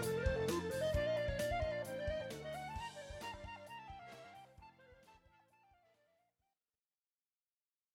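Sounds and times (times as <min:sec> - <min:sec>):
funky music with clarinet: 0:00.0 - 0:06.0.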